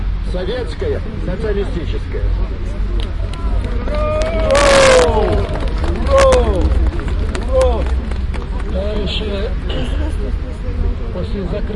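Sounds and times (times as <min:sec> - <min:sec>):
speech: 0:00.3 - 0:05.5, 0:08.9 - 0:10.4, 0:11.1 - 0:11.7
crowd applause and cheering at rally: 0:03.0 - 0:09.4.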